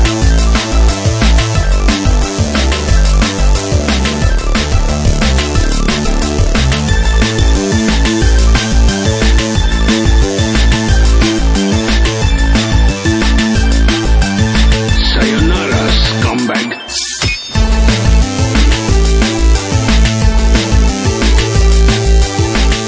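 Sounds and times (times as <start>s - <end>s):
8-bit chiptune music mix: 0.2s - 22.8s.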